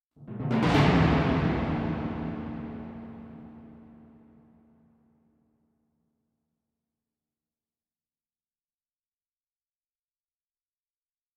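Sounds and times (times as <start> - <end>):
war drums: 0.2 - 4.4.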